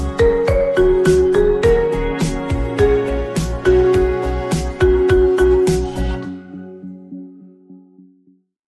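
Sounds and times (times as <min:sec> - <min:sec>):
marimba remix: 0:00.0 - 0:06.4.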